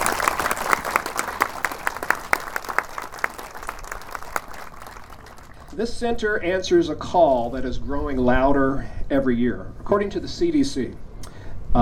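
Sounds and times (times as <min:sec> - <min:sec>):
audience applause: 0:00.0 - 0:05.8
speech: 0:05.8 - 0:11.0.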